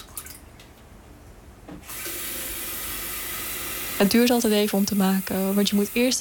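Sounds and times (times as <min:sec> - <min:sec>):
pouring boiling water: 0:01.9 - 0:06.1
speech: 0:04.0 - 0:06.1.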